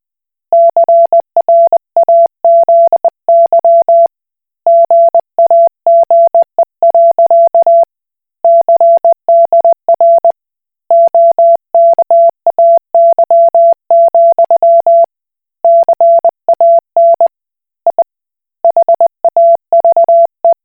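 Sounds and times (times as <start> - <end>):
Koch Morse code beeps: 0.6 - 4.1, 4.7 - 7.9, 8.5 - 10.3, 10.9 - 15.1, 15.7 - 17.3, 18.7 - 20.6.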